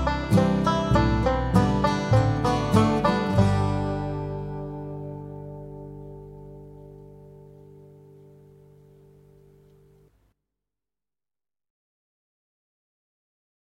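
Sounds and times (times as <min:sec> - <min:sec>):
solo banjo: 0:00.0 - 0:10.1.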